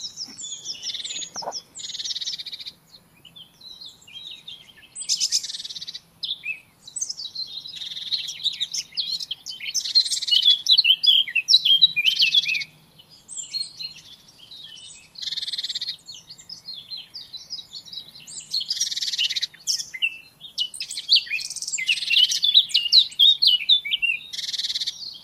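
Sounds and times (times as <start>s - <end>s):
Eurasian blackcap warbling: 0.0s - 1.9s
background hiss: 0.0s - 25.2s.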